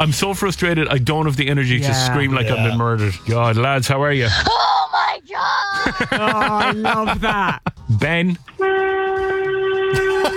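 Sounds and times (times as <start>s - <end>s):
speech: 0.0s - 8.8s
laughter: 5.7s - 7.8s, 9.9s - 10.3s
horn honking: 8.5s - 10.3s.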